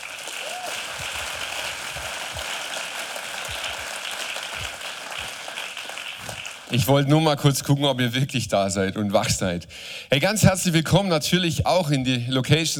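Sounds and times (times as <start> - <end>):
audience applause for the band: 0.0 - 6.9
speech: 6.7 - 12.7.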